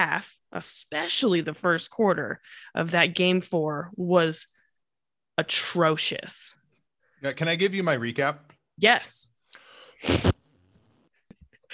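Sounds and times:
speech: 0.0s - 4.6s, 5.4s - 6.6s, 7.2s - 9.3s, 10.0s - 10.4s
quiet breath: 2.4s - 2.8s, 9.4s - 10.0s
fart noise blown by a voice: 10.0s - 11.3s.

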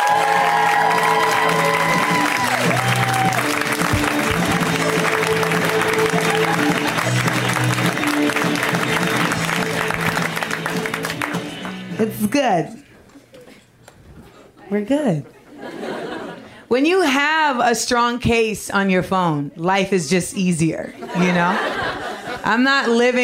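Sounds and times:
cheers and whoops: 0.0s - 7.1s
crowd applause: 0.0s - 12.0s
laughter: 5.9s - 7.9s, 15.3s - 16.6s, 20.9s - 23.2s
speech: 12.5s - 12.8s, 14.7s - 15.4s, 16.7s - 23.2s.

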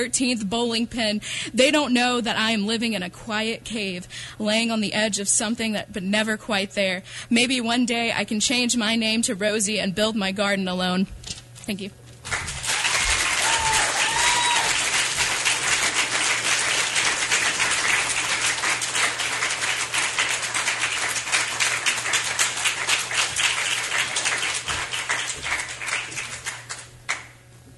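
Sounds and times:
speech: 0.0s - 12.6s
audience applause after a performance: 12.2s - 27.3s.

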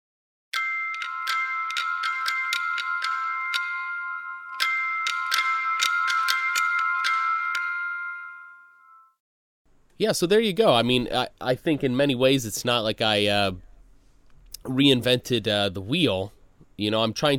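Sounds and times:
bell-like alarm melody played on acoustic instruments: 0.6s - 9.2s
speech: 10.0s - 13.7s, 14.6s - 17.3s.

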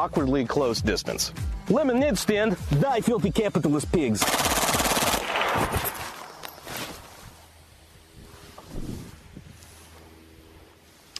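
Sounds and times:
speech: 0.0s - 4.7s
Skorpion submachine gun firing full auto: 4.2s - 6.5s.

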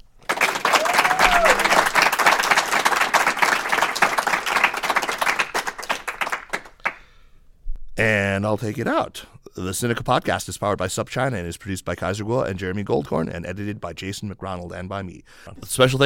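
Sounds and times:
crowd applause: 0.0s - 7.0s
speech: 8.0s - 16.0s.

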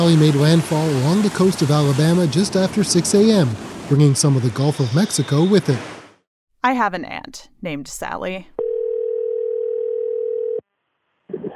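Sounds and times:
speech: 0.0s - 6.0s, 6.6s - 8.6s
steady telephone call tone: 8.6s - 10.6s.

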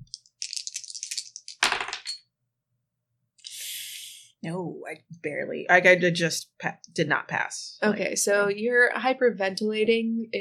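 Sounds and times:
dice being rolled: 0.1s - 2.2s
speech: 4.4s - 10.3s.

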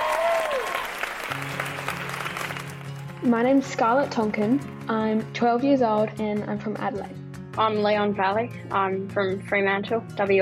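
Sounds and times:
audience applause welcoming the Fred Hollows Junior Ambassadors: 0.0s - 3.2s
speech: 3.2s - 10.4s.

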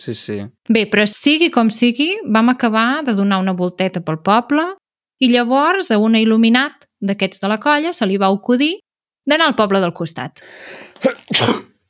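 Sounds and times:
speech: 0.0s - 11.7s
sneeze: 11.0s - 11.8s.

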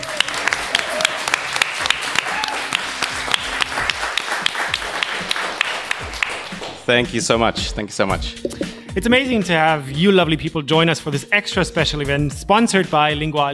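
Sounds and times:
pub audience round of applause: 0.0s - 6.8s
speech: 6.9s - 13.5s.

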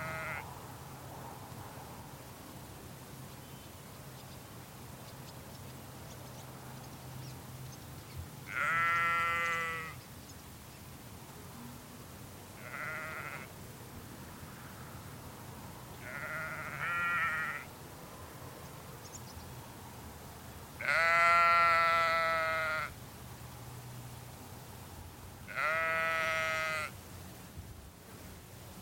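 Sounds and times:
sheep bleating: 0.0s - 0.4s, 8.5s - 10.0s, 12.6s - 13.5s, 16.0s - 17.7s, 20.8s - 22.9s, 25.5s - 26.9s
wind: 0.0s - 28.8s.

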